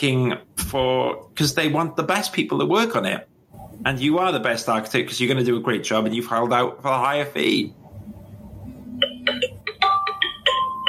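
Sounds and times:
speech: 0.0s - 7.8s
low hum: 0.0s - 10.8s
phone ringtone with chiming electronic notes: 8.9s - 10.8s.

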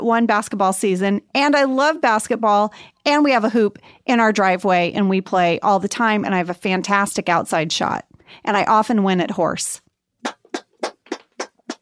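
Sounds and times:
speech: 0.0s - 9.8s
hands clapping: 10.2s - 11.8s.

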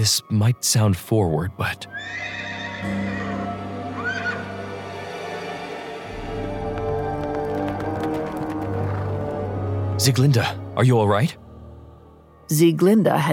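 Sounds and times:
speech: 0.0s - 3.4s, 10.0s - 11.4s, 12.5s - 13.3s
musical drone: 1.8s - 13.3s
horse whinnying: 1.9s - 4.6s
horse hoofbeats: 6.1s - 9.6s.

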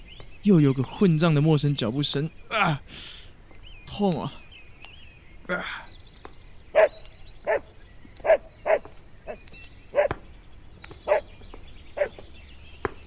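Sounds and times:
speech: 0.4s - 3.2s, 3.9s - 4.4s, 5.5s - 5.9s
beagle barking: 6.8s - 8.8s, 11.1s - 11.3s.

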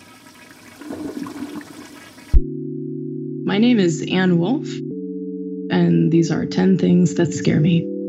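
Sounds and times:
toilet flushing: 0.0s - 2.4s
speech: 3.5s - 4.9s, 5.8s - 7.9s.

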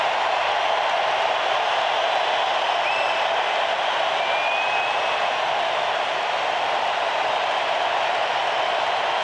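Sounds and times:
stadium crowd ovation with cheering and applause: 0.0s - 9.2s.

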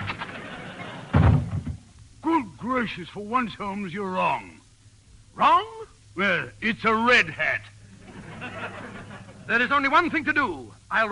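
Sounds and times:
laughter: 0.0s - 1.2s, 8.0s - 9.6s
door opening: 0.0s - 1.9s
faint hiss: 0.0s - 11.0s
speech: 2.7s - 4.6s, 5.4s - 7.8s, 9.5s - 11.0s.

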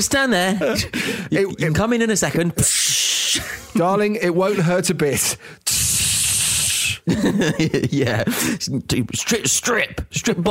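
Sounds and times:
speech: 0.0s - 5.9s, 7.1s - 10.4s
voice imitating a jet wash spraying: 5.6s - 7.1s
laughter: 7.0s - 8.7s.

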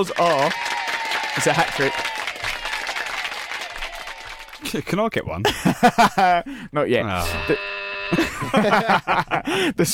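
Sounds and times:
speech: 0.0s - 0.8s, 1.4s - 2.2s, 4.6s - 9.9s
round of applause: 0.0s - 4.9s
laughter: 5.4s - 6.5s, 8.1s - 9.7s.

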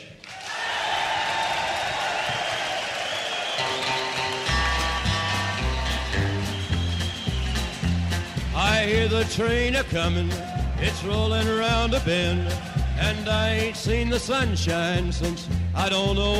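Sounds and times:
concert crowd cheering and applauding: 0.0s - 14.6s
band playing bass and guitar rhythm: 3.6s - 16.3s
speech: 8.8s - 16.3s.

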